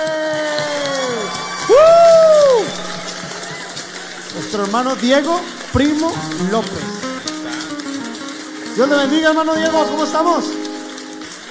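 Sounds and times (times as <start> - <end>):
audience applauding: 0.0 - 11.5
speech: 4.5 - 7.0, 8.8 - 10.6.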